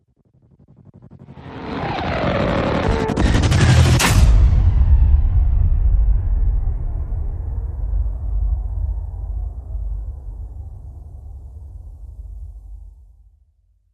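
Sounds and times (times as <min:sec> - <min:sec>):
impact hit: 0:02.8 - 0:10.5.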